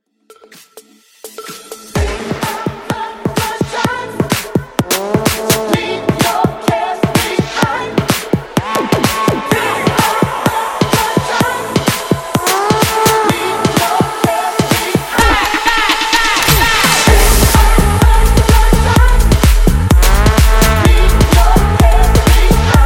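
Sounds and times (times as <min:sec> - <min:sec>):
music mashup: 0:00.0 - 0:22.8.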